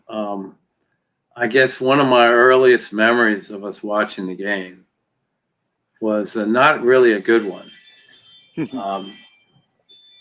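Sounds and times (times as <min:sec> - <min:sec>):
speech: 0:00.1 - 0:00.6, 0:01.4 - 0:04.9, 0:06.0 - 0:07.8, 0:08.6 - 0:09.2
chimes: 0:06.3 - 0:10.1.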